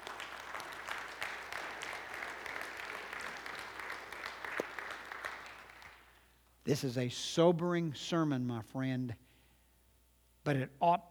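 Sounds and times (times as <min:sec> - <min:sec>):
audience applause: 0:00.0 - 0:06.2
speech: 0:06.6 - 0:09.2, 0:10.4 - 0:11.1.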